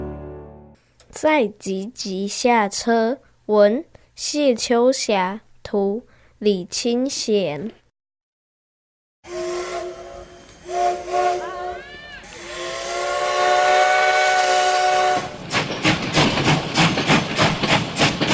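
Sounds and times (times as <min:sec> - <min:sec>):
speech: 0:01.1 - 0:07.8
steam train running: 0:09.3 - 0:18.3.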